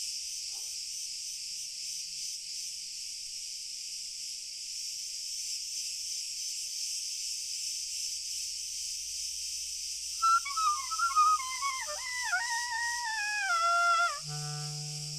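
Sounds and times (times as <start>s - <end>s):
chorus of crickets: 0.0s - 15.1s.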